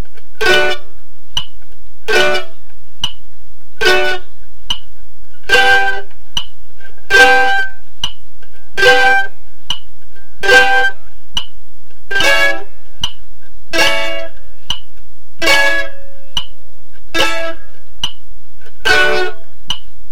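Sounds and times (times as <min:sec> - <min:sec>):
mandolin D chord changes at 72bpm: 0:00.4 - 0:01.0, 0:02.1 - 0:02.7, 0:03.8 - 0:04.4, 0:05.4 - 0:06.2, 0:06.9 - 0:07.9, 0:08.5 - 0:09.5, 0:10.4 - 0:11.2, 0:12.1 - 0:13.1, 0:13.7 - 0:14.8, 0:15.4 - 0:16.4, 0:17.1 - 0:17.9, 0:18.8 - 0:19.6.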